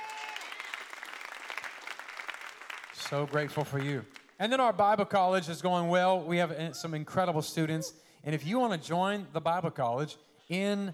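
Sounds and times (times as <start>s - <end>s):
audience clapping hands: 0.0s - 4.4s
speech: 3.1s - 10.9s.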